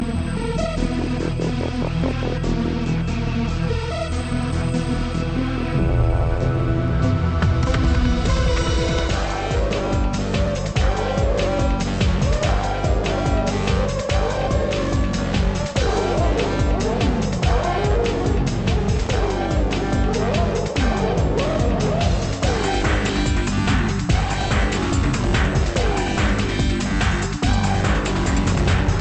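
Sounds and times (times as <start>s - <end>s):
techno music: 0.0s - 29.0s.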